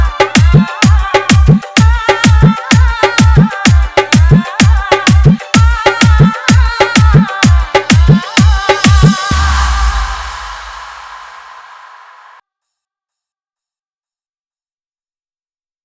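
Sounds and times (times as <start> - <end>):
jumping dance mix beat: 0.0 - 12.4.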